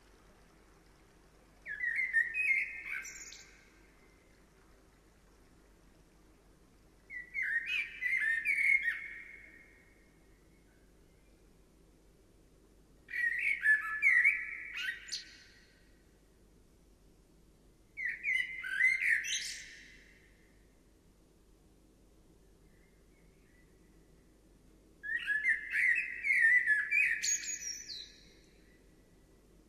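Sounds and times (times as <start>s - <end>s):
bird warbling song: 1.5s - 5.1s, 7.0s - 11.6s, 13.1s - 15.8s, 18.0s - 20.5s, 25.0s - 29.0s.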